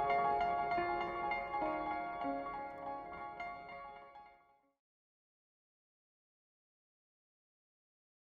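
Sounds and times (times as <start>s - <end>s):
piano: 0.0s - 4.4s.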